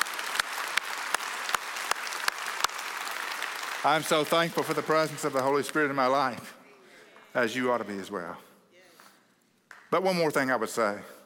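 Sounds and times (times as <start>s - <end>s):
audience applause: 0.0s - 6.2s
speech: 3.8s - 6.6s, 7.4s - 8.5s, 9.9s - 11.2s.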